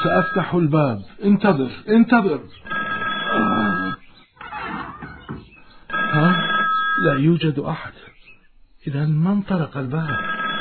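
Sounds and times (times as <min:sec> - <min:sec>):
telephone ringing: 0:00.0 - 0:00.6, 0:02.5 - 0:04.1, 0:05.4 - 0:07.4, 0:10.0 - 0:10.5
speech: 0:00.0 - 0:02.8, 0:06.2 - 0:06.4, 0:07.0 - 0:08.1, 0:08.8 - 0:10.4.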